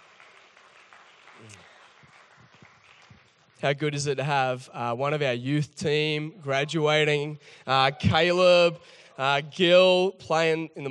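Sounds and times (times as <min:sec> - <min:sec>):
faint applause for the band: 0:00.0 - 0:03.6
speech: 0:01.4 - 0:01.7, 0:03.6 - 0:10.9.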